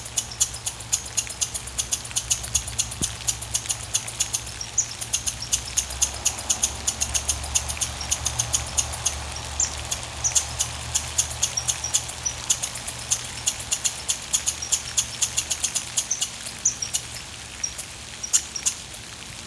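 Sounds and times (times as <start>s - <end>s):
chipmunk chip calls: 0.1s - 18.8s.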